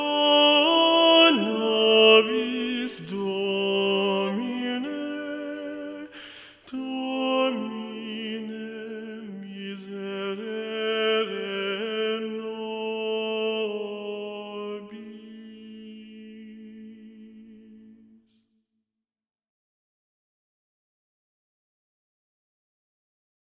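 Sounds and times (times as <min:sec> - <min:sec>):
choir singing: 0:00.0 - 0:18.0.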